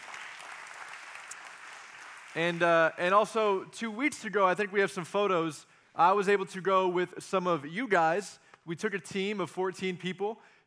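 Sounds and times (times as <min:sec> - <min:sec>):
audience applause: 0:00.0 - 0:03.2
speech: 0:02.3 - 0:10.6.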